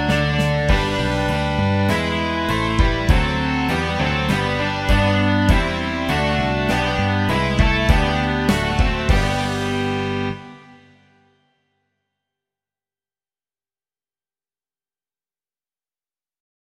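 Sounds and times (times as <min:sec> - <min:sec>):
rock music: 0:00.0 - 0:11.3.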